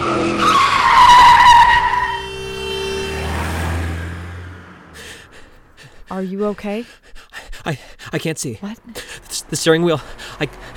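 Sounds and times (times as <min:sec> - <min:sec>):
car skidding with tires screeching: 0:00.0 - 0:05.7, 0:09.2 - 0:10.7
car engine hum and rumble: 0:01.8 - 0:06.9, 0:08.5 - 0:10.7
speech: 0:06.2 - 0:10.7.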